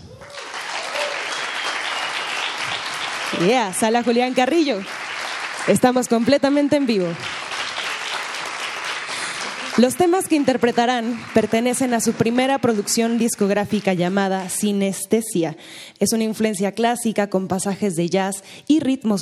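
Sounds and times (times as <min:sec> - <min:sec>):
audience applause at live concert: 0:00.0 - 0:14.2
speech: 0:03.4 - 0:05.0, 0:05.6 - 0:07.4, 0:09.8 - 0:19.2.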